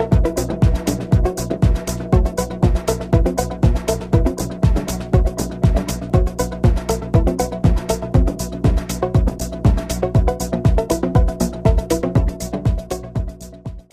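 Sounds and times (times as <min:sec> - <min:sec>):
drums: 0:00.0 - 0:13.9.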